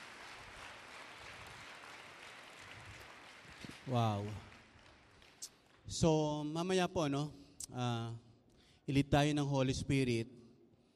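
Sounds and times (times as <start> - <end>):
audience applause: 0.0 - 5.8
speech: 3.9 - 4.5, 5.9 - 8.2, 8.9 - 10.4.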